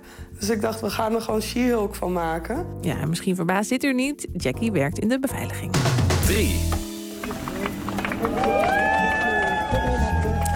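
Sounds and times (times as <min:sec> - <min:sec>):
speech: 0:00.4 - 0:06.8
crowd applauding and cheering for landing pilot: 0:06.9 - 0:10.5.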